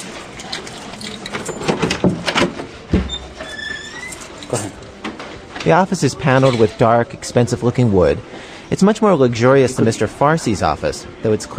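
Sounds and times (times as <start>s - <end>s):
office door squeaking as it swings: 0.8s - 4.8s, 6.3s - 6.9s
speech: 4.5s - 4.7s, 5.6s - 11.5s.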